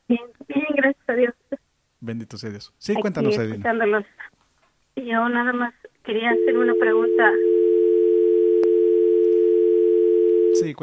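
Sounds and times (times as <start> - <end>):
speech: 2.1 - 4.3, 5.1 - 7.5, 10.6 - 10.8
phone line tone after a radio call-in dropped: 6.2 - 10.8.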